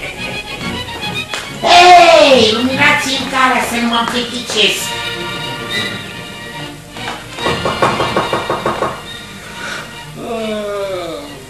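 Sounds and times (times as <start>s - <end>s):
speech: 2.4s - 5.0s
knocking on a wooden door: 7.4s - 9.1s.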